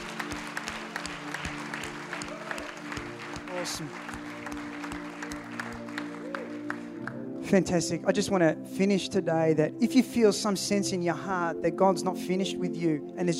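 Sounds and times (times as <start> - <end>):
audience clapping: 0.0 - 7.3
speech: 3.6 - 4.1, 7.5 - 13.3.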